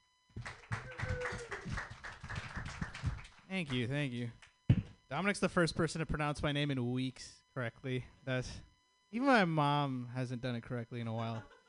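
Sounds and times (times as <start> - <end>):
audience clapping for a comedian at an open mic night: 0.4 - 4.5
speech: 3.5 - 4.4, 5.1 - 11.6.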